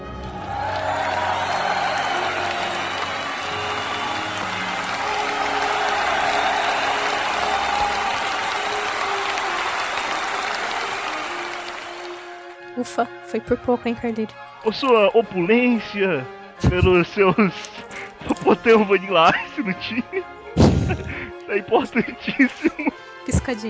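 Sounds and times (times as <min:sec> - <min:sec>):
round of applause: 0:00.0 - 0:12.7, 0:14.7 - 0:23.0
laughter: 0:00.2 - 0:11.5, 0:14.7 - 0:23.6
speech: 0:12.8 - 0:20.2, 0:21.5 - 0:23.6.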